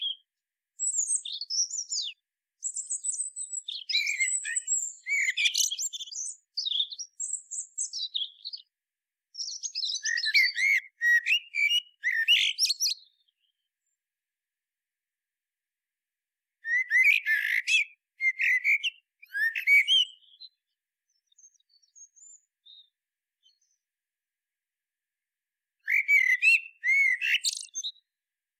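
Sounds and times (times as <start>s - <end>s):
common blackbird singing: 0.0s - 0.2s, 0.8s - 8.7s, 9.4s - 13.7s, 16.6s - 23.8s, 25.8s - 28.1s.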